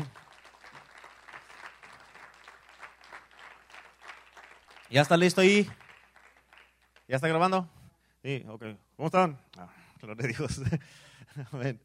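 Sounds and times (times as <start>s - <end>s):
audience applause: 0.0s - 7.1s
speech: 4.9s - 5.8s, 7.1s - 11.8s
laughter: 10.2s - 11.6s.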